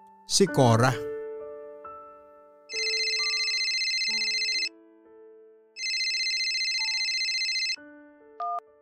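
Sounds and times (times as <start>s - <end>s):
soft music: 0.0s - 8.8s
speech: 0.3s - 1.1s
telephone ringing in long electronic bursts: 2.7s - 4.7s, 5.8s - 7.8s.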